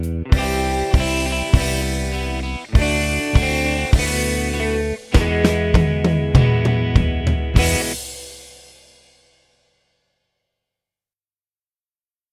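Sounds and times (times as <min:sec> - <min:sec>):
funky guitar: 0:00.0 - 0:08.2
drums: 0:00.0 - 0:09.8.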